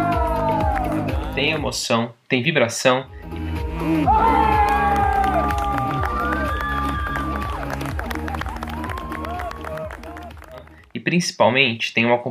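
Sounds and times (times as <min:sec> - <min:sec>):
crowd cheering at Roundnet tournament: 0:00.0 - 0:01.6, 0:03.9 - 0:10.8
speech: 0:01.4 - 0:04.6, 0:11.0 - 0:12.2.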